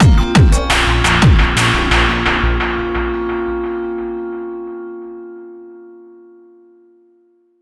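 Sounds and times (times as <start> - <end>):
dramatic sound effect: 0.5 - 4.9.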